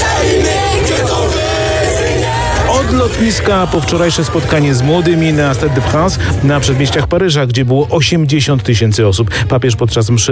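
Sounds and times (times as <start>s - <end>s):
crowd cheering to greet Pope Leo XIV in France: 0.0s - 7.1s
speech: 3.0s - 10.3s.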